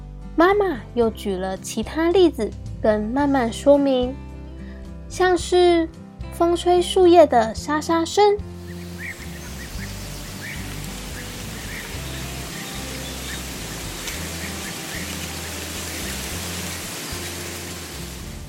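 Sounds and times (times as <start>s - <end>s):
speech: 0.4s - 4.3s, 5.1s - 8.5s
rain falling: 8.6s - 18.4s.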